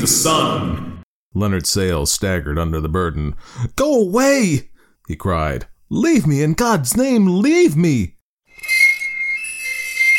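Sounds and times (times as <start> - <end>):
speech: 0.0 - 8.8
high shriek of hot steel on steel: 8.5 - 10.1.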